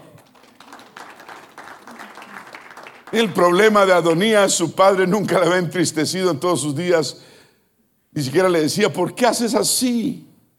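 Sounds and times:
audience applause: 0:00.0 - 0:03.6
speech: 0:03.1 - 0:07.3, 0:08.2 - 0:10.3.

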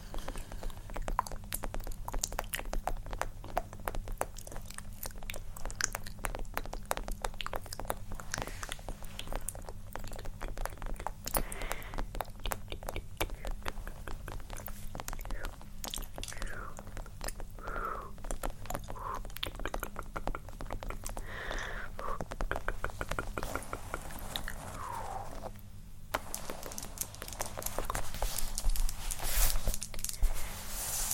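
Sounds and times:
tapping and scratching: 0:00.0 - 0:17.5, 0:18.2 - 0:30.3
wet mouth sounds: 0:00.0 - 0:30.2
low hum: 0:17.6 - 0:31.0.

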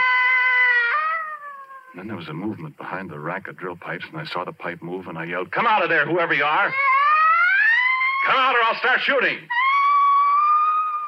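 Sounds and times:
small child's drawn-out crying wail: 0:00.0 - 0:02.0, 0:06.6 - 0:08.6, 0:09.4 - 0:11.0
speech: 0:02.0 - 0:06.9, 0:08.2 - 0:09.6.

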